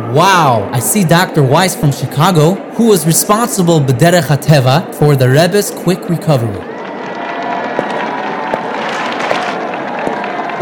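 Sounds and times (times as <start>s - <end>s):
speech: 0.1s - 6.7s
cheering: 6.0s - 10.6s
clapping: 6.8s - 10.6s.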